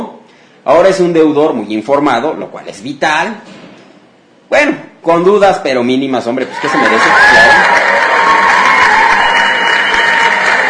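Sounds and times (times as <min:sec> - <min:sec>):
speech: 0:00.6 - 0:03.6, 0:04.5 - 0:08.1
applause sound effect: 0:06.4 - 0:10.6.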